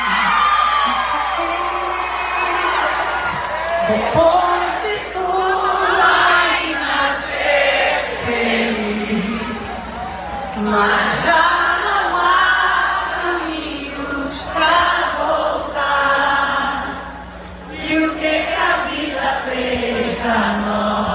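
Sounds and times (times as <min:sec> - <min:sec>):
crowd singing along to famous verses: 0:00.0 - 0:21.1
speech: 0:03.9 - 0:04.4.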